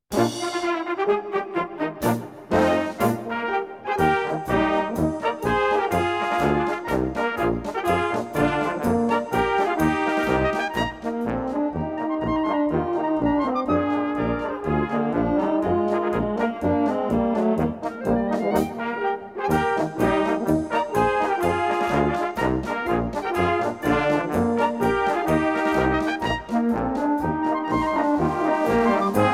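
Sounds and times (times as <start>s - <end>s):
march music: 0.1s - 29.3s.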